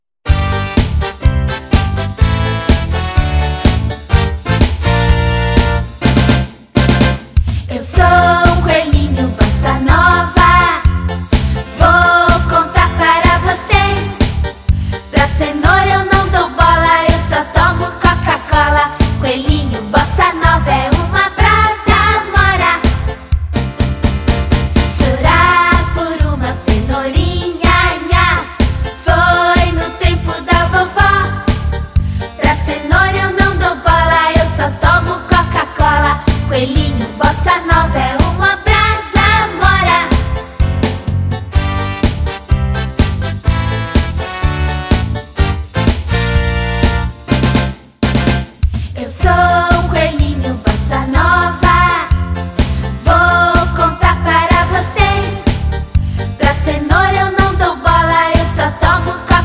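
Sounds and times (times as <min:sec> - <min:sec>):
bossa nova song: 0:00.3 - 0:59.4.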